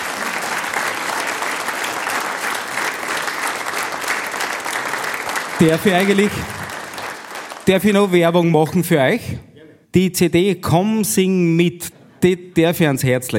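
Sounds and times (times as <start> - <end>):
audience applause: 0.0 - 8.2
speech: 5.6 - 6.6, 7.7 - 13.3.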